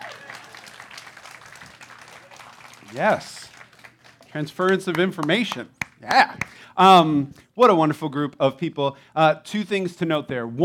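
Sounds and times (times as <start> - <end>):
audience clapping: 0.0 - 6.6
speech: 2.9 - 3.4, 4.4 - 10.6.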